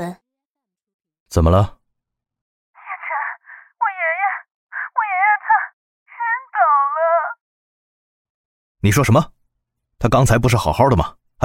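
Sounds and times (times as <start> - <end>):
speech: 0.0 - 0.2, 1.3 - 1.8, 8.8 - 9.4, 10.0 - 11.4
person sobbing over the phone: 2.8 - 7.4.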